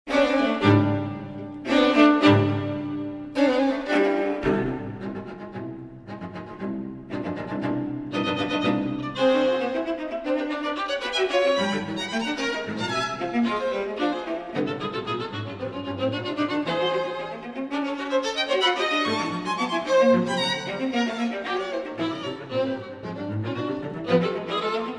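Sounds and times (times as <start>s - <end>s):
string quartet: 0.1s - 24.9s.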